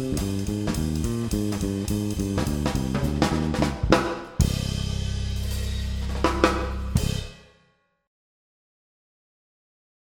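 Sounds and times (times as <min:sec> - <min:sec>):
blues music in C minor: 0:00.0 - 0:07.1.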